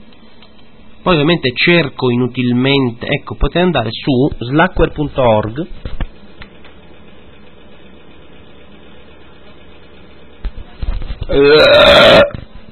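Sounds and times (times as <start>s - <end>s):
steady low hum: 0.0s - 12.7s
speech: 1.0s - 6.0s, 11.4s - 12.4s
loud drawn-out burp: 11.3s - 12.4s.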